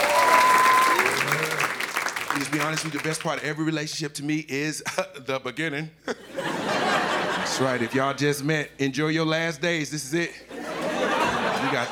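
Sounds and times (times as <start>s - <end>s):
thin whistles or whoops: 0.0s - 2.2s
laughter: 0.0s - 3.4s, 6.0s - 8.2s, 10.5s - 11.9s
crowd clapping: 0.0s - 3.8s
speech: 2.5s - 6.2s, 7.6s - 10.5s, 11.7s - 11.9s.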